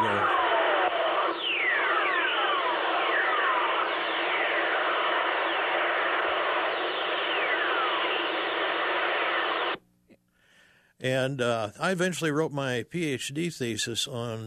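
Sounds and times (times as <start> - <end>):
radio whistlers from thunderstorm lightning: 0.0 - 9.8
loud steady crackling hiss: 0.6 - 9.8
speech: 11.0 - 14.4.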